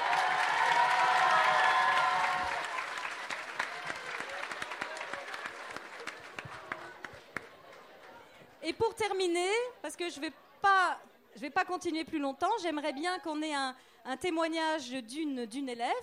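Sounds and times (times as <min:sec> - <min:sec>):
audience applauding: 0:00.0 - 0:08.2
speech: 0:08.8 - 0:16.0.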